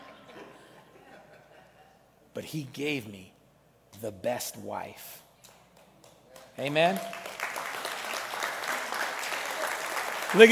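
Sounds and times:
speech: 0:02.4 - 0:03.4, 0:04.0 - 0:05.2, 0:06.6 - 0:07.2
crowd applause: 0:06.6 - 0:10.4.

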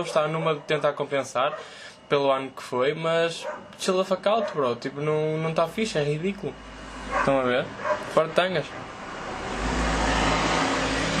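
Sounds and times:
speech: 0:00.0 - 0:09.7
street traffic noise heard from balcony: 0:03.4 - 0:03.8, 0:05.7 - 0:11.1.

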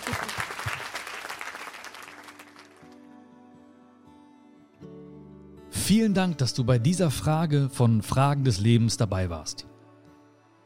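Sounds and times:
audience applause: 0:00.0 - 0:02.9
speech: 0:05.9 - 0:09.7.

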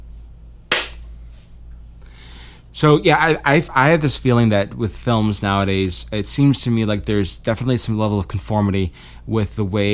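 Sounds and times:
hand clap marking an edit point: 0:00.7 - 0:01.1
speech: 0:02.8 - 0:09.9.

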